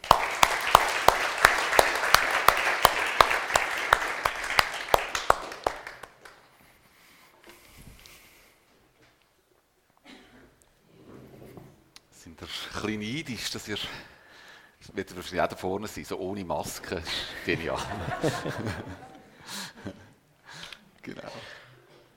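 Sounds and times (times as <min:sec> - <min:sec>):
audience applause: 0:00.0 - 0:06.4
speech: 0:12.6 - 0:14.2, 0:15.0 - 0:19.1
laughter: 0:17.1 - 0:20.2.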